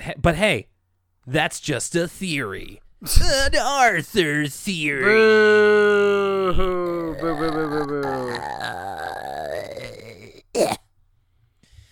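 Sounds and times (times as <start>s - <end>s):
speech: 0.1s - 9.0s
cough: 10.6s - 10.9s.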